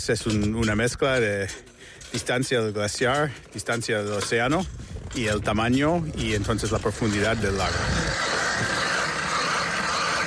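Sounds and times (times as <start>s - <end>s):
speech: 0.0s - 8.7s
drill boring through lake ice: 2.2s - 10.2s.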